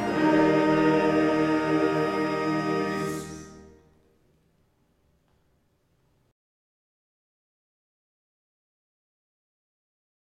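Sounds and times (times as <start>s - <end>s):
choir singing hymns: 0.0s - 3.9s.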